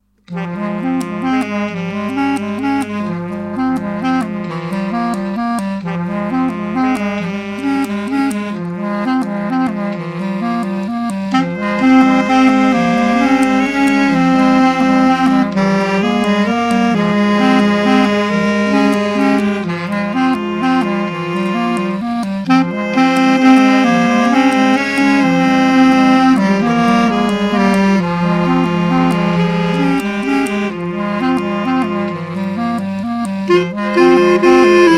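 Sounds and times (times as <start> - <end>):
reed instrument duet: 0.0 - 34.9.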